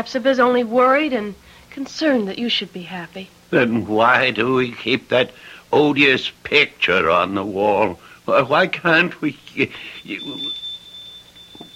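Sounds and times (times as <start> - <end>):
speech: 0.0 - 10.6
shop door bell tinkling: 9.7 - 11.7.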